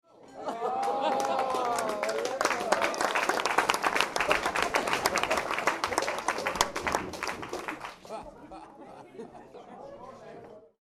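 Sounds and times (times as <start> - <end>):
laughter: 0.2 - 10.7
small indoor crowd applauding: 0.5 - 8.6.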